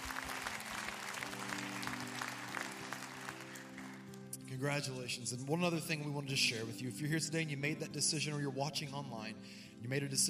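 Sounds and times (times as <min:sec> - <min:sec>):
church audience applause welcoming new believers at a Christmas service: 0:00.0 - 0:04.2
speech: 0:04.5 - 0:10.2.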